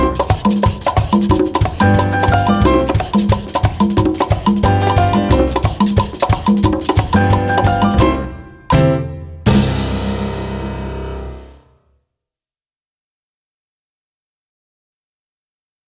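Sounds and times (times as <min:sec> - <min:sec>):
Cuban percussion Christmas tune: 0:00.0 - 0:11.6.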